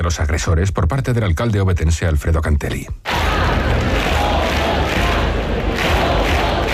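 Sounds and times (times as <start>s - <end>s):
speech: 0.1s - 3.2s
protest crowd chanting a slogan: 3.1s - 6.7s.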